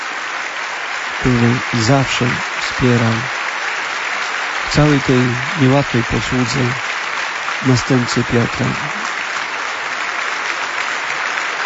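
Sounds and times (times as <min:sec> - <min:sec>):
crowd applause: 0:00.0 - 0:11.6
speech: 0:01.2 - 0:03.4, 0:04.7 - 0:06.9, 0:07.6 - 0:09.0.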